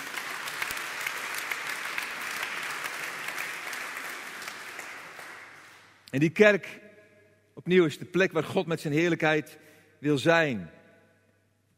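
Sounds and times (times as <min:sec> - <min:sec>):
audience applauding: 0:00.0 - 0:05.9
speech: 0:06.1 - 0:06.8, 0:07.6 - 0:10.8.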